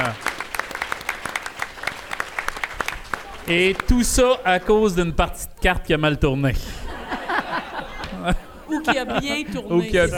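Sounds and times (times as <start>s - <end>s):
audience applause: 0.0s - 4.7s
laughter: 3.2s - 5.1s, 6.6s - 10.1s
speech: 3.5s - 6.8s, 8.2s - 10.1s.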